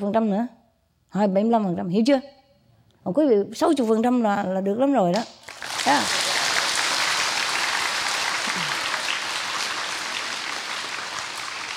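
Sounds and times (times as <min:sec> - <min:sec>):
speech: 0:00.0 - 0:02.4, 0:03.0 - 0:06.3
audience applause at a retreat: 0:05.4 - 0:11.7.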